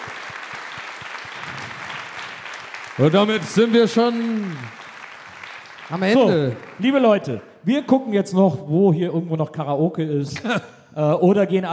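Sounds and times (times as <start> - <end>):
audience applause after a quiz question: 0.0 - 7.4
speech: 3.0 - 4.8, 5.9 - 11.7.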